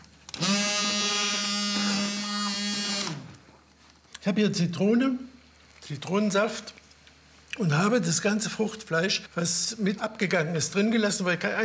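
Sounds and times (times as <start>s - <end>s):
immersion blender puréeing peanut dip: 0.3s - 3.4s
speech: 4.2s - 5.3s, 5.9s - 6.8s, 7.6s - 11.6s.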